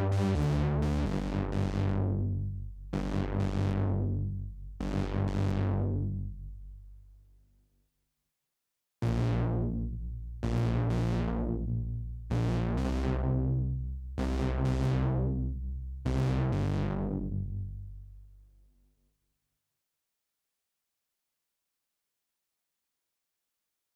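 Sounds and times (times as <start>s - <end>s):
bass: 0.0s - 7.4s, 9.0s - 18.8s.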